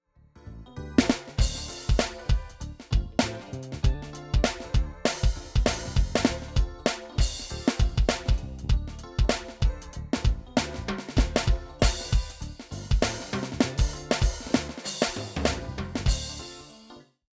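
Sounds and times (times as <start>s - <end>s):
drum backing track: 1.0s - 16.9s.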